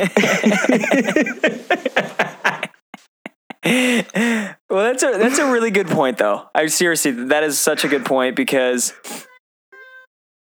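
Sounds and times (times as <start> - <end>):
speech: 0.0 - 1.4, 4.9 - 9.3
laughter: 0.0 - 4.4, 7.6 - 9.2
cat meowing: 9.0 - 10.1.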